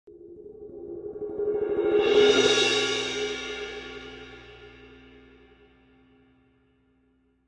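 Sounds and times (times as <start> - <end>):
K Constantinople suspended cymbal: 0.7 - 6.6.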